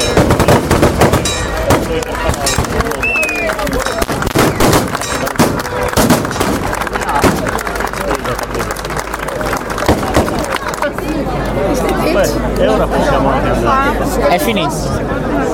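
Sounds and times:
sharp cracks and bangs: 0.0s - 3.0s, 3.8s - 7.8s, 9.8s - 10.7s
crowd talking and calling out at an ancestral rite in Sedilo: 0.0s - 15.5s.

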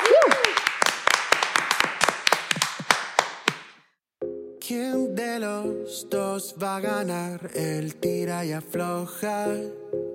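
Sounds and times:
audience applause: 0.0s - 3.8s
speech: 4.7s - 10.0s.

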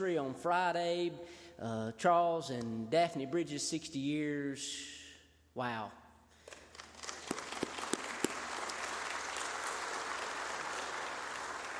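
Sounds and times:
speech: 0.0s - 5.0s, 5.6s - 6.0s
audience clapping: 6.5s - 11.7s.

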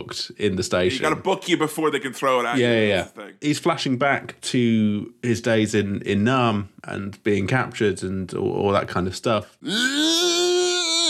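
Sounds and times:
speech: 0.0s - 10.2s
Stallone screaming in film clip: 9.6s - 11.0s.

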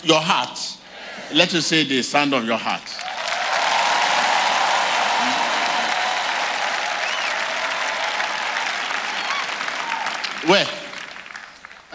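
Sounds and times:
speech: 0.0s - 3.1s, 10.5s - 10.8s
audience clapping: 2.7s - 11.9s.

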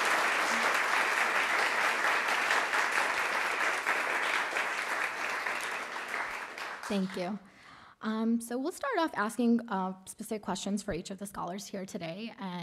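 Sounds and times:
audience applause: 0.0s - 7.4s
speech: 6.9s - 12.6s.

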